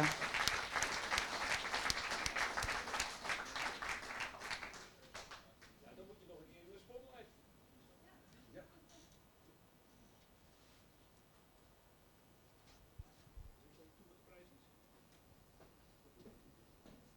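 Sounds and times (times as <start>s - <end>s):
audience applause: 0.0s - 5.4s.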